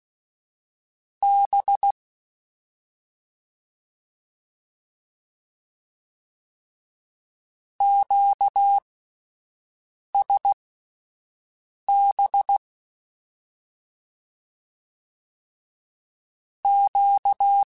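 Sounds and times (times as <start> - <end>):
Morse code Q calls in CW code groups: 1.2 - 2.0, 7.8 - 8.8, 10.2 - 10.6, 11.9 - 12.6, 16.7 - 17.7.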